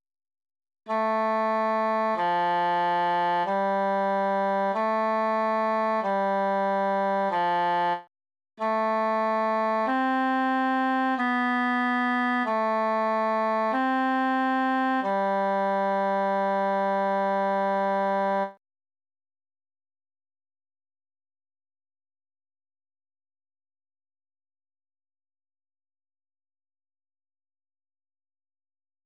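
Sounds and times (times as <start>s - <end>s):
tenor solo: 0.9s - 8.0s, 8.6s - 18.6s.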